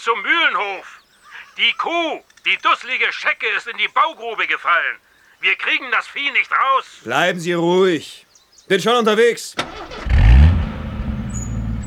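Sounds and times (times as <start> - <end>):
speech: 0.0 - 1.0, 1.6 - 10.0
jeep engine revving as the vehicle turns and drives off: 9.6 - 11.8.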